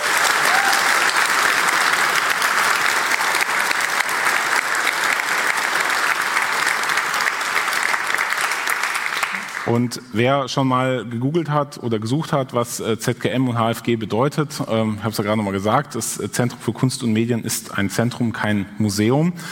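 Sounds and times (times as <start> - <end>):
audience applause: 0.0 - 9.8
speech: 9.7 - 19.5.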